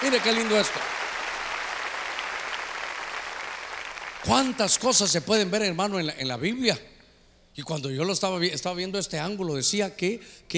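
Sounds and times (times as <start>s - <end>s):
loud clapping from many hands: 0.0s - 4.6s
speech: 0.1s - 1.1s, 4.2s - 6.9s, 7.6s - 10.5s.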